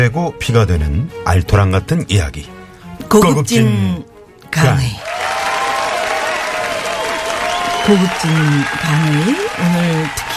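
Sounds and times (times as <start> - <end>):
speech: 0.0 - 5.0, 7.8 - 10.3
studio audience applause: 5.0 - 10.3.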